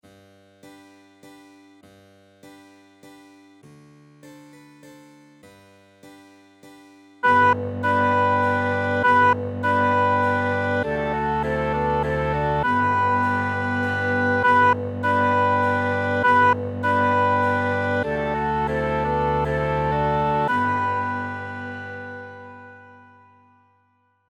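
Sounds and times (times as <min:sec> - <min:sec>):
flute playing a minuet: 0:07.2 - 0:23.6.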